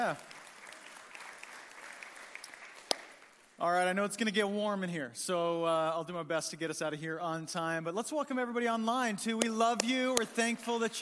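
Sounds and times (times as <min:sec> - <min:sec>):
speech: 0:00.0 - 0:00.3, 0:03.6 - 0:11.0
light polite golf-clap applause from an audience in a room: 0:00.0 - 0:03.6.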